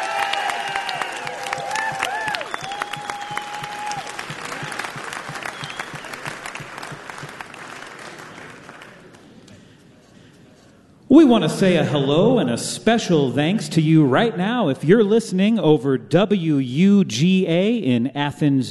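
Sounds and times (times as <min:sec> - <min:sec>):
audience applause: 0:00.0 - 0:09.6
speech: 0:11.1 - 0:18.6.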